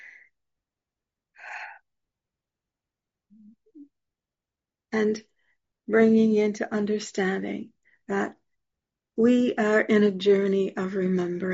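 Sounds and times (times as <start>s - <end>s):
person breathing during a guided meditation: 0.0s - 0.3s, 1.4s - 1.8s
speech: 3.4s - 4.1s, 4.9s - 5.3s, 5.9s - 8.4s, 9.2s - 11.5s.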